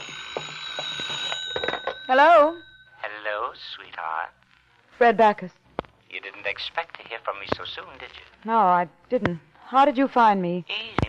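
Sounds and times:
telephone ringing: 0.0 - 3.9
speech: 2.1 - 4.4, 5.0 - 11.0.

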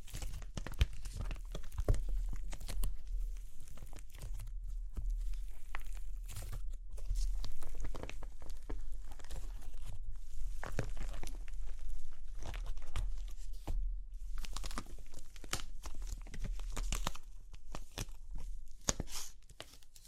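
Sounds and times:
dry clay cracking and crunching: 0.0 - 20.0.

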